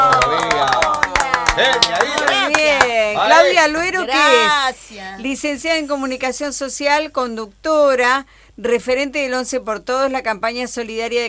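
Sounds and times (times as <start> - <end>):
studio audience applauding: 0.0 - 3.6
speech: 3.1 - 11.2.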